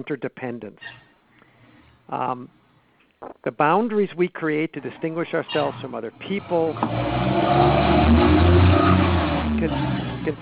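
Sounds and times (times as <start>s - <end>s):
speech: 0.0s - 1.1s, 2.1s - 2.6s, 3.2s - 8.4s, 9.6s - 10.4s
train pulling away with engine drone: 5.6s - 10.4s.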